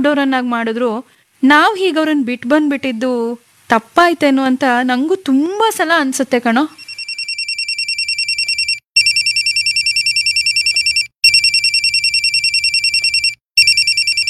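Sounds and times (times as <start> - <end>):
speech: 0.0 - 6.8
phone electronic ringtone trilling with an incoming call: 6.8 - 14.2.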